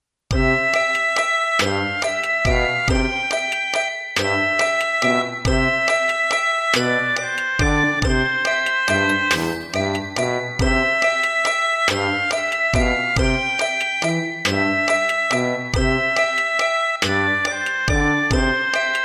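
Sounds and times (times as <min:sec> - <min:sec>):
gentle cartoon music: 0:00.3 - 0:19.0.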